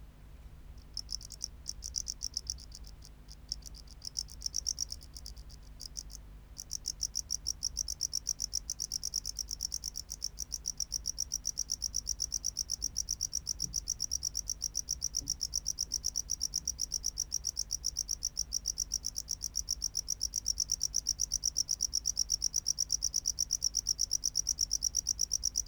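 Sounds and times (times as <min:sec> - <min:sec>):
low steady hum: 0:00.0 - 0:12.2
Tropical house cricket chirping: 0:00.8 - 0:25.6.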